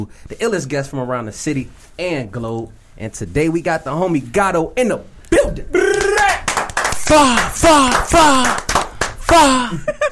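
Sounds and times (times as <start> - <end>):
speech: 0.0 - 6.0, 7.1 - 8.7, 9.3 - 10.1
voice making falling swooping sound effects: 5.3 - 6.4
hand clapping: 5.9 - 9.8.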